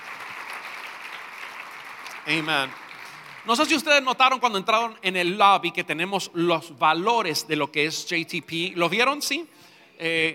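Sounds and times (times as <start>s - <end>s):
audience applause: 0.0s - 4.0s
speech: 2.3s - 2.8s, 3.4s - 10.3s.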